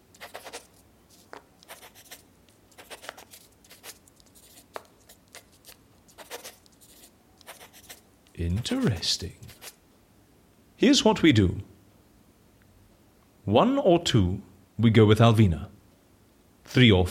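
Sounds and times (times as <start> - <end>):
pen scratching on paper in an office: 0.1 - 9.8
speech: 8.4 - 9.4, 10.8 - 11.7, 13.5 - 15.7, 16.7 - 17.1.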